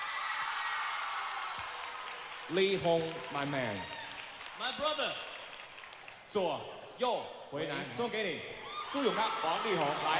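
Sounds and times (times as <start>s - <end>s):
audience applause welcoming a singer onto a stage: 0.0s - 6.2s, 8.8s - 10.1s
speech: 2.5s - 4.0s, 4.6s - 5.3s, 6.3s - 10.1s.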